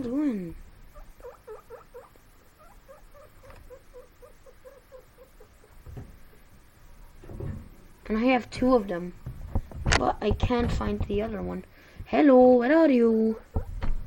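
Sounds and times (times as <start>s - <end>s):
speech: 0.0s - 0.7s, 8.1s - 9.2s, 10.0s - 13.6s
guinea pigs squeaking and chirping: 0.8s - 5.9s, 13.1s - 13.9s
rustling thumps: 5.6s - 11.6s, 13.4s - 14.0s.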